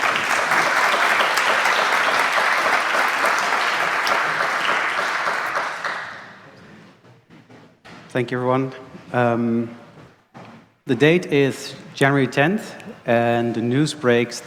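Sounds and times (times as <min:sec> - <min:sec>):
audience applause: 0:00.0 - 0:06.6
speech: 0:08.2 - 0:09.8, 0:10.9 - 0:14.4.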